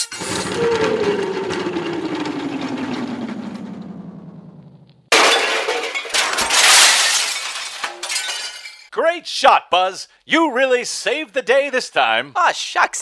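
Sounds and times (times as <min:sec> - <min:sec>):
descending whistle-like tone: 0:00.0 - 0:03.2
transmission tower crashing with shattering metal and debris: 0:00.0 - 0:03.2, 0:05.1 - 0:08.9
speech: 0:09.2 - 0:13.0.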